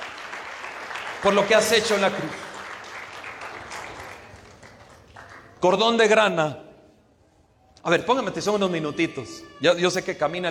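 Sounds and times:
audience applause: 0.0 - 5.5
speech: 1.2 - 2.5, 5.6 - 6.6, 7.8 - 10.4.

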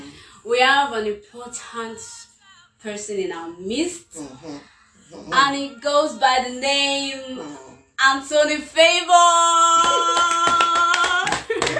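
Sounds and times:
speech: 0.5 - 10.6
steady rhythmic clapping in a round of applause: 9.5 - 11.7.

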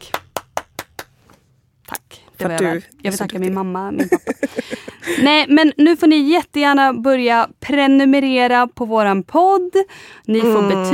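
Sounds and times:
sharp hand claps: 0.0 - 1.2
speech: 2.4 - 10.9
laughter: 4.0 - 5.3.

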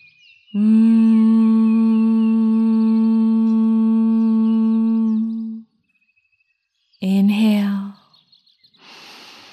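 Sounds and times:
speech: 0.5 - 1.1
closed-mouth humming like a bee: 0.6 - 5.6.

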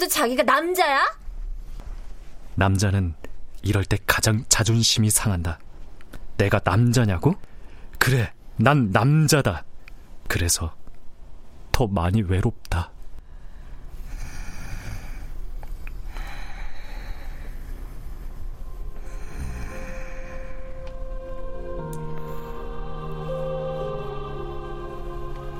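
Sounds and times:
speech: 0.0 - 1.2, 2.6 - 5.6, 6.4 - 9.7, 10.3 - 10.8, 11.8 - 12.9
light snoring while falling asleep: 14.0 - 20.8
sustained shifting tones: 18.5 - 25.5.

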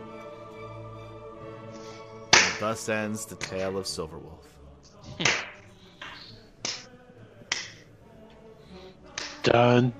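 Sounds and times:
slow hand clap: 2.3 - 2.6, 5.2 - 6.9, 7.5 - 7.8, 9.1 - 9.5
speech: 2.6 - 4.6, 9.5 - 9.9.

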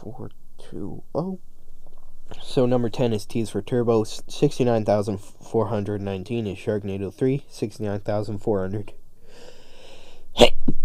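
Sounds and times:
speech: 0.1 - 1.5, 2.4 - 9.5
person sneezing a held-in sneeze: 10.3 - 10.7.

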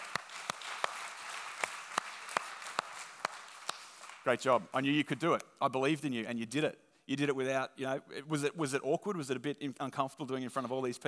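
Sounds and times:
audience clapping: 0.0 - 5.2
speech: 4.2 - 11.0.

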